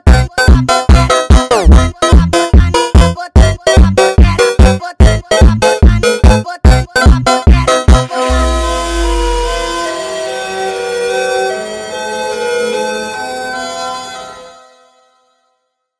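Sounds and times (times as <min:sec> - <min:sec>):
sped up funk music: 0:00.0 - 0:10.2.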